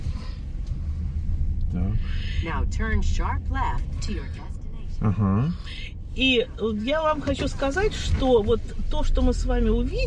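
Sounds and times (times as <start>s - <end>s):
car driving toward the main avenue at Stanford: 0.0s - 10.0s
speech: 1.7s - 10.0s.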